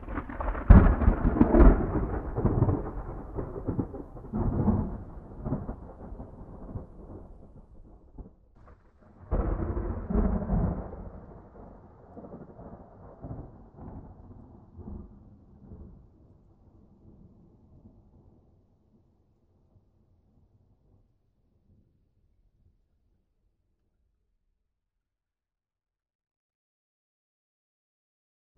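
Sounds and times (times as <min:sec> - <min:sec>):
thunder on an island: 0:00.0 - 0:18.6.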